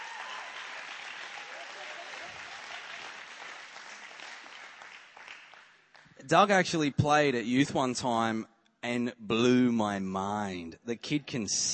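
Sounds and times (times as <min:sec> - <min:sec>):
audience clapping: 0:00.0 - 0:06.2
speech: 0:06.3 - 0:11.7.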